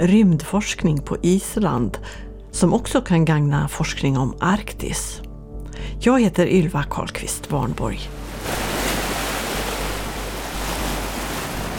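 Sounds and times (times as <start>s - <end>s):
speech: 0.0s - 5.2s, 5.8s - 8.6s
ocean waves: 8.0s - 11.7s.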